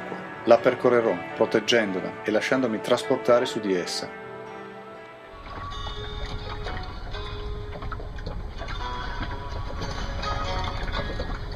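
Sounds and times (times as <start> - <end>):
speech: 0.5 - 4.2
small boat rocking on a river: 5.3 - 11.5
boat creaks and knocks: 5.4 - 11.5
faint tonal squeaks: 5.4 - 11.5.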